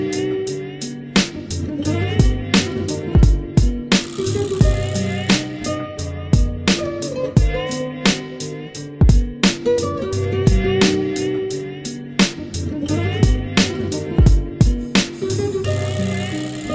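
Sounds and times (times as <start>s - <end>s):
instrumental rap hip hop beat: 0.0s - 16.7s.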